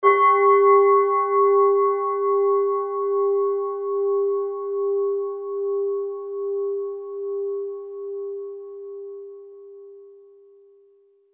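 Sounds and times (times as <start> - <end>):
Japanese black raku bowls ringing: 0.0 - 9.1.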